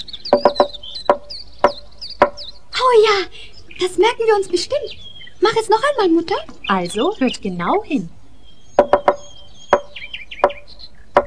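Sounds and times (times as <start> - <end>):
sharp solid knocks as a signal: 0.3 - 2.5, 8.8 - 11.2
speech: 3.8 - 8.2.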